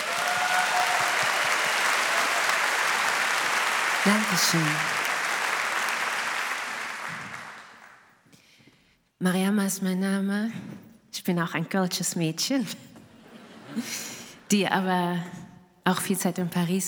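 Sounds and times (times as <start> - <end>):
audience applause: 0.0 - 8.2
speech: 4.0 - 5.0, 9.2 - 12.9, 13.8 - 16.8.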